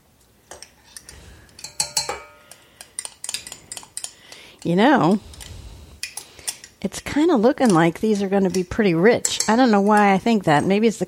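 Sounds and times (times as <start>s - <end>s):
measuring cup and utensils clinking against bowl of cookie dough: 1.6s - 2.6s
speech: 4.6s - 5.3s, 6.8s - 11.0s.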